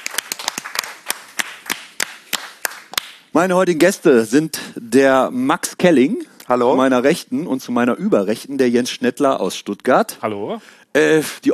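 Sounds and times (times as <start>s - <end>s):
audience applause and clapping: 0.0s - 3.1s
speech: 3.4s - 11.5s.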